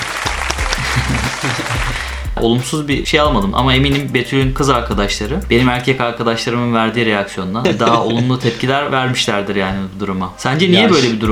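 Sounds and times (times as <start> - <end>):
applause sound effect: 0.0 - 2.1
laughter: 0.0 - 2.2, 7.6 - 8.9
speech: 1.4 - 11.3.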